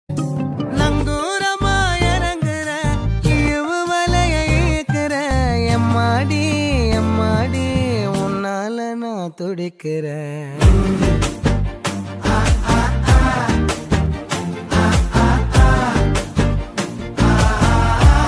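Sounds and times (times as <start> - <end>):
love ringtone background music: 0.1 - 8.8, 10.6 - 18.2.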